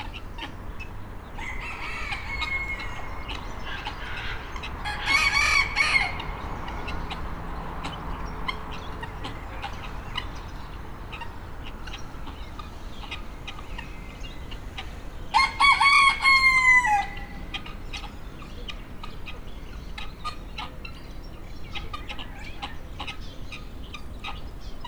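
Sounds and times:
rooster crowing in the farmyard section of a zoo in Nyíregyháza Hungary: 1.4 - 6.4, 15.3 - 17.4.

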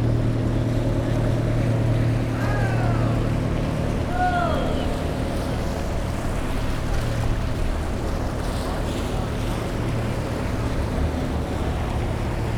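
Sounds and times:
loud water vehicle at a jetty in Venice: 0.0 - 12.5.

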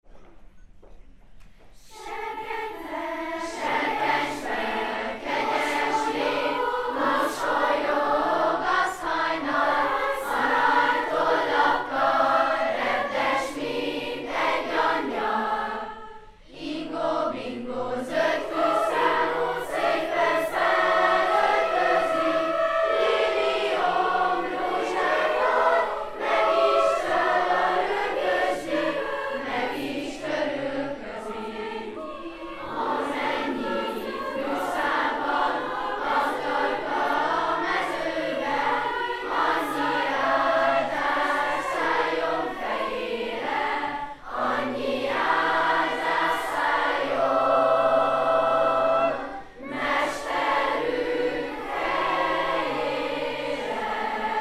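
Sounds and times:
combined youth school choir singing: 1.8 - 54.4.

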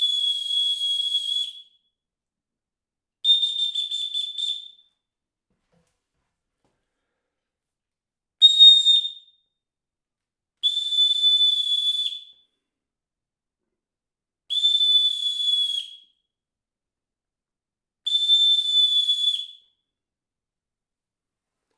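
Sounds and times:
whistle: 0.0 - 2.0, 3.2 - 5.1, 8.4 - 9.6, 10.6 - 12.6, 14.5 - 16.3, 18.1 - 19.9.

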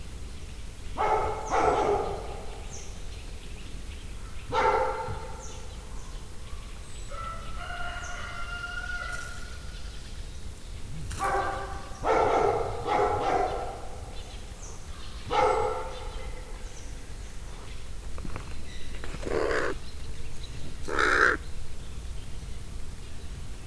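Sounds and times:
dog at a zoo: 1.0 - 2.6, 4.5 - 5.5, 11.2 - 14.2, 15.2 - 16.5
rooster at a zoo: 7.2 - 9.2
hooded crow at a zoo: 19.2 - 19.8, 20.9 - 21.4.

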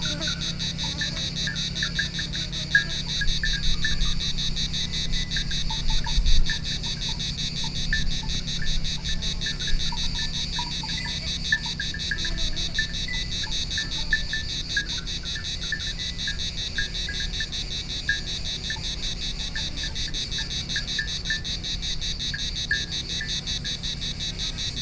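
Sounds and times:
cicada buzzing: 0.0 - 24.8.

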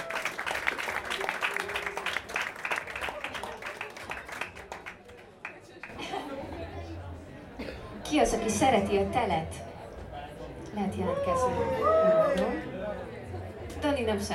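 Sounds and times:
audience applauding: 0.0 - 6.0
crowd chatter: 0.0 - 14.3
laughter: 5.8 - 7.0
speech: 8.1 - 9.6, 10.8 - 12.7, 13.8 - 14.3.

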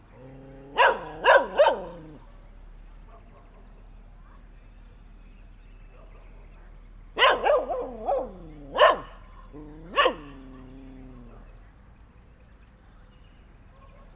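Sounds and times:
dog barking at a cyclist in Hortobagy: 0.2 - 2.4, 3.1 - 4.4, 7.2 - 11.5, 13.7 - 14.1.

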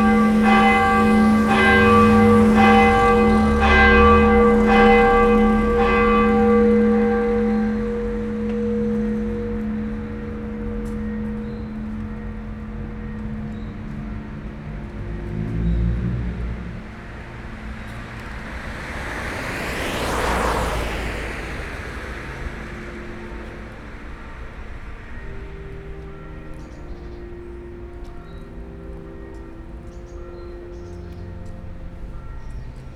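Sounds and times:
church bells ringing for the start of the ten o'clock mass: 0.0 - 32.9.

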